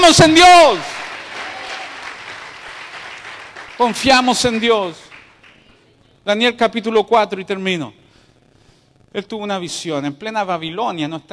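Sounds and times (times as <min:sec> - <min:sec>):
speech: 0:00.0 - 0:01.0, 0:03.8 - 0:05.0, 0:06.3 - 0:08.0, 0:09.1 - 0:11.3
applause: 0:00.6 - 0:06.0.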